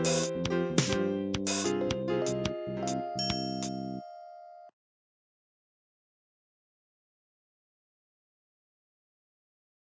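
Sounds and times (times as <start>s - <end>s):
fast-paced tune: 0.0s - 4.3s.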